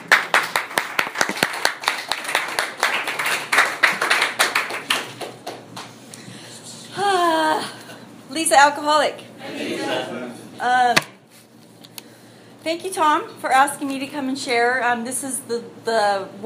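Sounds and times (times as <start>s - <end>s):
audience at a recovery meeting clapping to welcome a speaker: 0.0s - 6.0s
speech: 8.4s - 11.1s, 12.6s - 16.4s.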